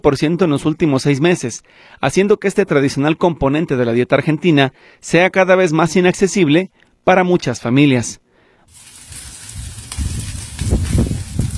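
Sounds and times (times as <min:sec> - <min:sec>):
speech: 0:00.0 - 0:08.2
beef sizzling over fire and embers on an Argentine asado grill: 0:08.7 - 0:11.5.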